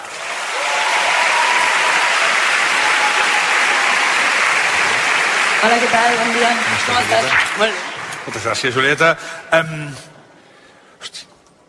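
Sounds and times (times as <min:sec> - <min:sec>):
audience applause: 0:00.0 - 0:09.1
speech: 0:05.6 - 0:10.1.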